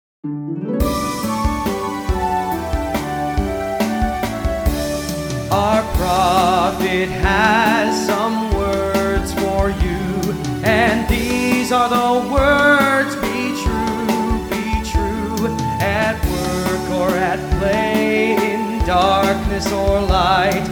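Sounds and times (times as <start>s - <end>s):
vocals: 0.9s - 20.6s.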